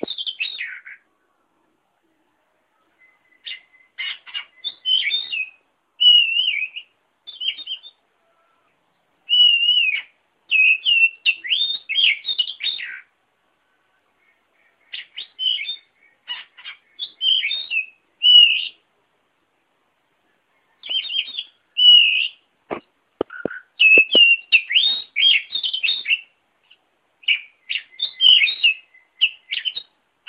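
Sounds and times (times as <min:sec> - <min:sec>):
Oriental magpie-robin singing: 0:00.0 - 0:01.0, 0:02.8 - 0:08.1, 0:09.3 - 0:13.2, 0:14.2 - 0:18.8, 0:20.6 - 0:22.5, 0:23.2 - 0:30.2.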